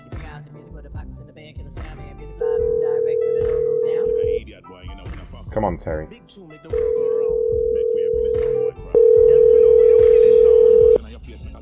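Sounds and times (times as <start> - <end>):
voices: 1.9 - 6.0, 6.8 - 11.5
ringback tone of a telephone call: 2.4 - 4.4, 6.9 - 11.0
speech: 5.5 - 6.8.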